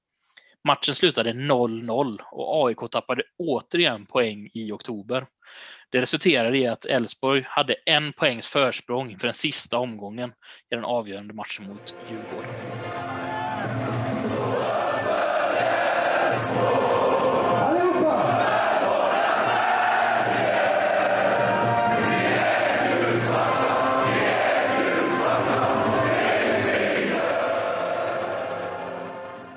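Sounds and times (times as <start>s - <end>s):
speech: 0.6s - 12.7s
football supporters singing a club anthem: 12.8s - 29.5s.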